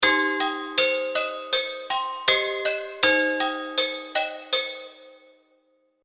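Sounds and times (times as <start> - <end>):
toy melody music loop: 0.0 - 5.3.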